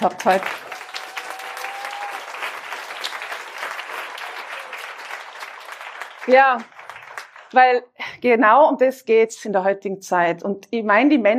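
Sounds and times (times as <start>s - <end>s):
speech: 0.0s - 0.7s, 6.3s - 6.7s, 7.5s - 11.3s
audience applause: 0.0s - 7.6s.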